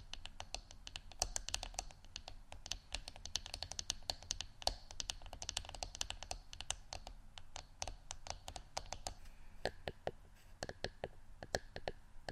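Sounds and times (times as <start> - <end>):
rapid irregular fingertip tapping: 0.0 - 12.3.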